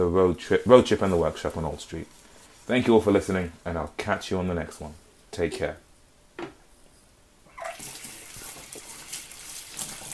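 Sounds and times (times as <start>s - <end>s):
speech: 0.0s - 5.8s
tap clunk: 6.4s - 6.6s
tap water running into sink while washing hands: 7.5s - 10.1s.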